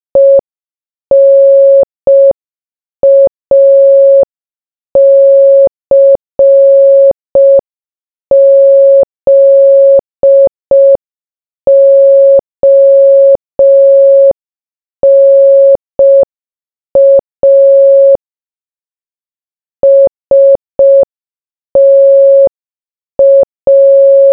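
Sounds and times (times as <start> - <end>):
morse code beeps: 0.2 - 0.4, 1.1 - 2.4, 3.0 - 4.3, 5.0 - 7.6, 8.3 - 11.0, 11.7 - 14.4, 15.0 - 16.3, 17.0 - 18.2, 19.8 - 21.1, 21.8 - 22.5, 23.2 - 24.3.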